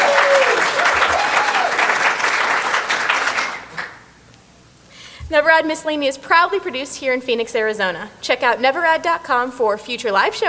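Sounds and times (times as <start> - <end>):
audience applause: 0.0 - 4.0
speech: 5.4 - 10.4.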